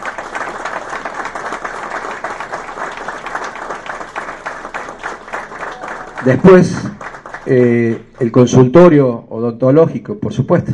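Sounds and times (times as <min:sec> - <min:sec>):
audience applause: 0:00.0 - 0:08.4
speech: 0:06.2 - 0:10.7.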